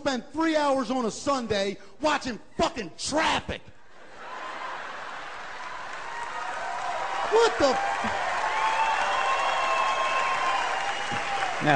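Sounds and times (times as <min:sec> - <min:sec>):
speech: 0:00.0 - 0:03.8, 0:07.3 - 0:08.2
large audience applause for a comedian: 0:04.2 - 0:11.7.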